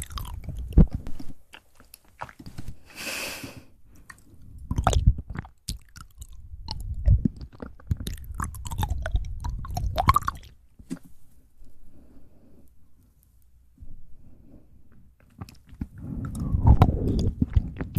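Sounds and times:
fast ASMR mouth sounds: 0.0 - 2.8, 3.4 - 11.0, 15.2 - 17.9.

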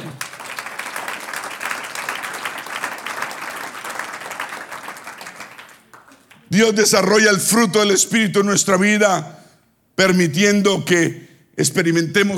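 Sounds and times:
audience applauding: 0.0 - 6.5
speech: 6.5 - 9.4, 10.0 - 12.3.

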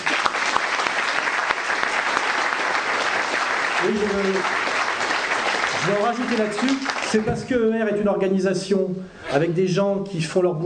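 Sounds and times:
audience applause: 0.0 - 7.3
speech: 3.8 - 4.6, 5.8 - 10.6.

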